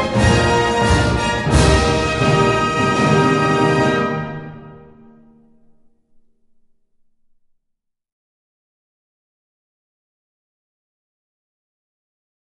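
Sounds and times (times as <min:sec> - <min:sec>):
national anthem: 0:00.0 - 0:05.2.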